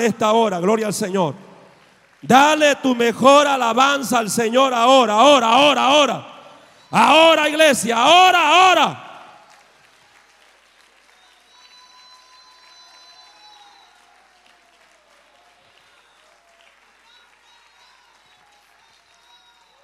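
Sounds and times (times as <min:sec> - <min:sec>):
speech: 0:00.0 - 0:01.5, 0:02.2 - 0:06.3, 0:06.9 - 0:09.0
audience applause: 0:00.0 - 0:04.0, 0:06.6 - 0:19.8
cheers and high whoops: 0:06.8 - 0:19.8.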